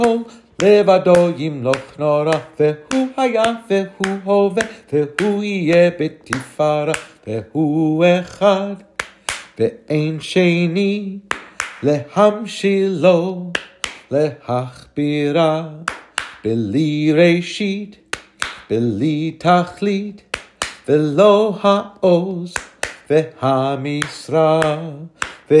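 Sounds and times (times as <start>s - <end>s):
clapping: 0.0s - 7.1s, 9.0s - 9.6s, 11.3s - 11.9s, 13.6s - 14.1s, 15.9s - 16.4s, 18.2s - 18.7s, 20.3s - 20.9s, 22.6s - 23.1s, 24.0s - 25.5s
Jewish hymn: 0.0s - 25.5s.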